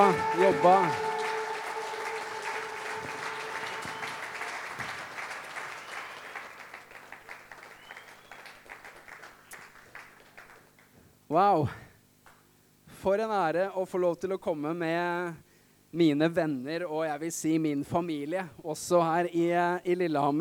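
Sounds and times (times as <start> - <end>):
speech: 0.0 - 1.1, 11.3 - 11.8, 13.0 - 20.3
audience applause: 0.0 - 10.8.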